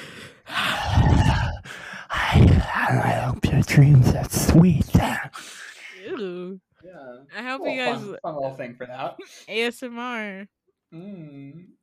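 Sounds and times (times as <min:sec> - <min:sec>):
heavy breathing: 0:00.0 - 0:03.5, 0:05.0 - 0:06.2
speech: 0:02.4 - 0:05.2, 0:07.7 - 0:11.8.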